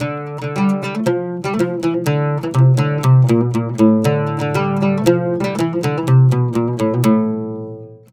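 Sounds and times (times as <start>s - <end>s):
oud: 0.0s - 8.1s.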